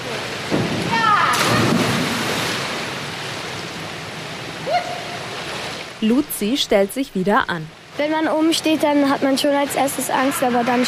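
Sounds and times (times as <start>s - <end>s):
churning water: 0.0s - 10.8s
feet-first jump splashing into pool water: 0.5s - 3.0s
speech: 6.0s - 10.8s.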